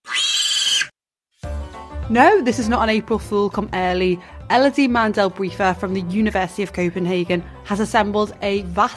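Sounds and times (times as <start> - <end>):
pig squealing: 0.0 - 1.0
speech: 2.1 - 8.9.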